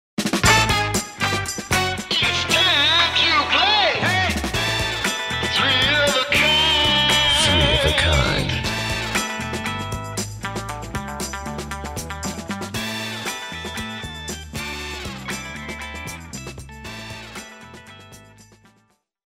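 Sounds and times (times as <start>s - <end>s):
Motown style soul music intro: 0.4s - 18.8s.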